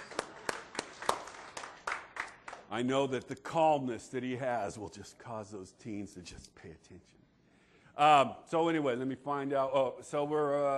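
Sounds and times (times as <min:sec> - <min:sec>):
audience sparse hand claps after a stage exercise: 0:00.0 - 0:02.7
speech: 0:02.7 - 0:07.2, 0:08.0 - 0:10.7.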